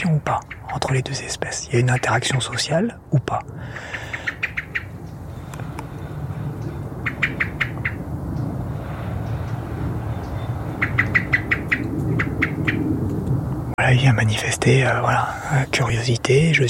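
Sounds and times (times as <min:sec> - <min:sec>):
speech: 0:00.0 - 0:04.1, 0:13.9 - 0:16.6
steady low engine-like rumble: 0:00.0 - 0:16.6
bird alarm call of rapid sharp high chirps: 0:00.4 - 0:00.9, 0:01.7 - 0:02.6, 0:03.8 - 0:08.5, 0:09.5 - 0:12.9.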